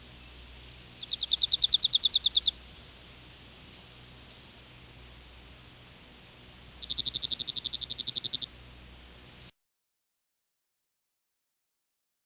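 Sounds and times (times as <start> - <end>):
slate-colored junco: 0.0 - 2.9, 6.8 - 8.6.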